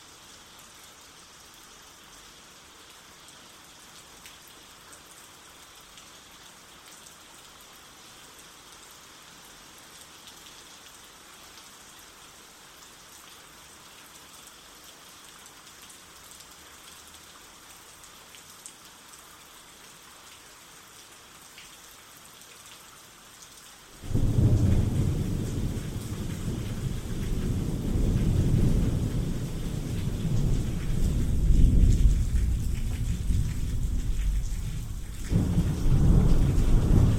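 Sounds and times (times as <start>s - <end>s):
rain: 0.0s - 37.1s
thunderstorm: 24.0s - 37.1s.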